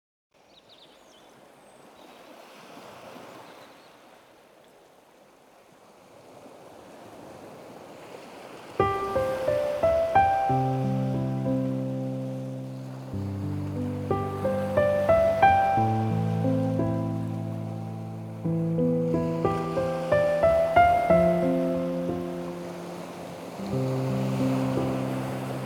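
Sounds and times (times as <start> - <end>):
ocean relaxing music: 8.8 - 25.6.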